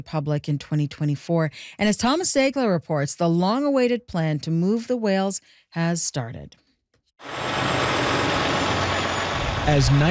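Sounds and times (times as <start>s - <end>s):
speech: 0.0s - 6.6s, 7.2s - 8.5s, 9.6s - 10.0s
engines of a convoy of transport trucks pulling away at night: 7.2s - 10.0s.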